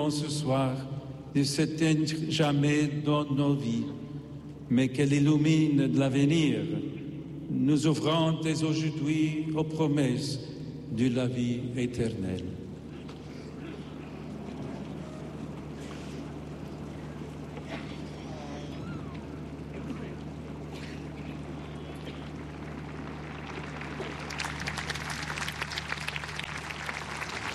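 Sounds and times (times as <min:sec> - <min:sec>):
speech: 0:00.0 - 0:04.0, 0:04.7 - 0:06.8, 0:07.5 - 0:12.6
pilgrims applauding speech of Pope Leo XIV: 0:13.2 - 0:27.5.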